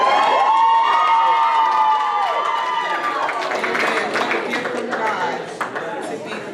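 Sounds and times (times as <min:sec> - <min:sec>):
audience cheering and whooping: 0:00.0 - 0:03.5
scattered clapping: 0:00.0 - 0:06.4.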